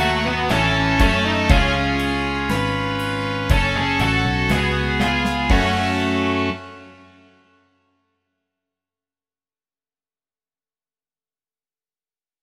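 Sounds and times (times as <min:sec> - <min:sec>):
rock music: 0:00.0 - 0:07.4.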